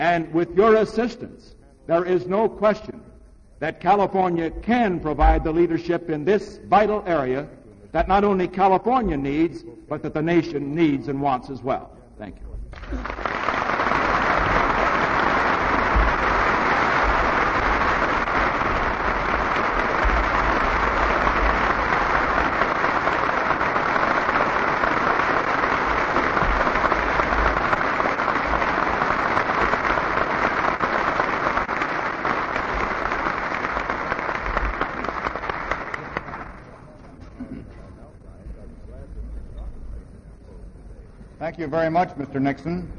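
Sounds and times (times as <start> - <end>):
speech: 0.0 - 13.4, 41.6 - 42.9
audience applause after a Richard Nixon speech in California: 12.7 - 37.2.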